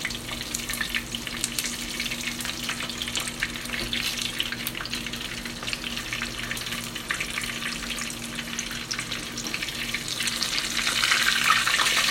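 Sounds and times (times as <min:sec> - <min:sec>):
menchi katsu frying in oil: 0:00.0 - 0:12.1.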